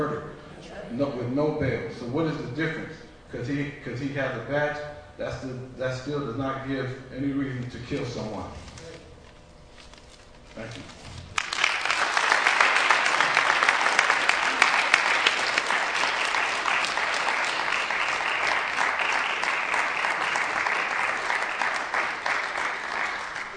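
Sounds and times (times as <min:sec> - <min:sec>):
speech: 0:00.9 - 0:08.7, 0:10.6 - 0:11.0
audience applause: 0:11.4 - 0:23.5.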